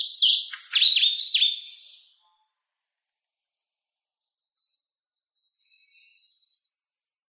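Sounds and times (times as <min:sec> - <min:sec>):
pied flycatcher Ficedula hypoleuca calling: 0:00.2 - 0:01.9.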